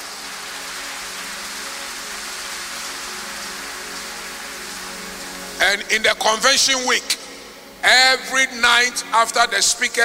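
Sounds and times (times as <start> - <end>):
crowd clapping: 0.0 - 5.6
speech: 5.7 - 7.2, 7.8 - 10.0.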